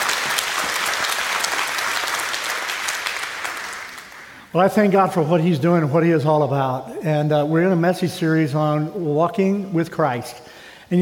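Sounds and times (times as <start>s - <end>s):
church congregation applauding during a Sunday service: 0.0s - 4.5s
speech: 4.5s - 11.0s.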